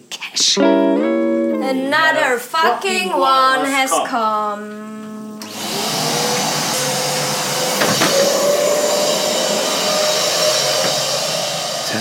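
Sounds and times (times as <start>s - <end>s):
speech: 0.4s - 1.1s, 1.7s - 5.1s
vacuum cleaner sucking up organic rice cake crumbs from the floor: 4.9s - 12.0s.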